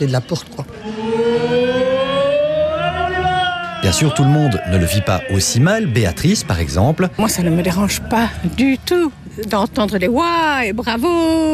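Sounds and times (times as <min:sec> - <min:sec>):
speech: 0:00.0 - 0:01.2, 0:03.8 - 0:11.5
sports venue siren horn: 0:00.6 - 0:06.0.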